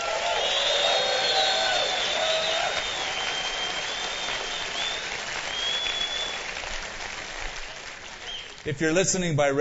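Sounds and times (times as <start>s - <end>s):
audience hooting and hollering: 0.0s - 6.4s
audience applauding: 0.0s - 9.0s
speech: 8.6s - 9.5s.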